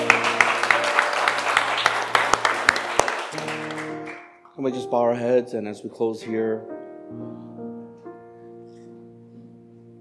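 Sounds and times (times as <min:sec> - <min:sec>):
audience clapping: 0:00.0 - 0:04.5
speech: 0:04.6 - 0:07.3.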